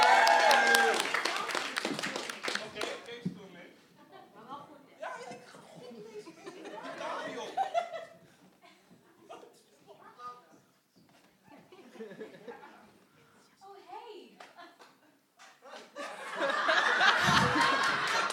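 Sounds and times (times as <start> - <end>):
encouraging applause: 0.0 - 3.2, 16.8 - 18.3
laughter: 6.1 - 8.2, 11.5 - 12.9, 15.6 - 18.3.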